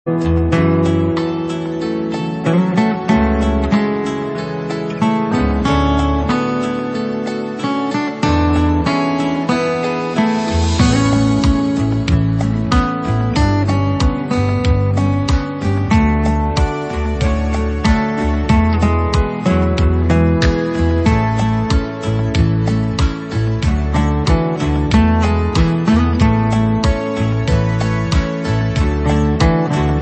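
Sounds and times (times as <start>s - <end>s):
guitar ballad: 0.0s - 29.9s.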